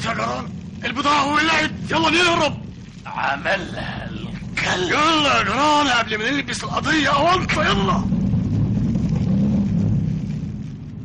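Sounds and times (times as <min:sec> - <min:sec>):
speeding 85-horsepower motor launch engine in a lake chase: 0:00.0 - 0:11.0
speech: 0:00.1 - 0:08.2.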